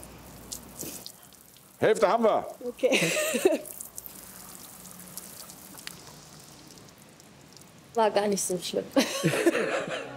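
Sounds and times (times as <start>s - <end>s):
water pouring from a watering can: 0.0s - 2.6s, 3.4s - 8.7s
water dripping: 0.0s - 9.3s
speech: 1.8s - 3.8s, 8.0s - 10.1s
laughter: 9.0s - 10.1s.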